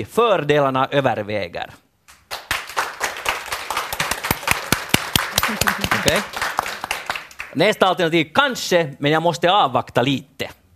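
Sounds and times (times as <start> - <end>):
speech: 0.0 - 1.8, 5.5 - 6.4, 7.6 - 10.6
scattered audience clapping: 2.1 - 7.8.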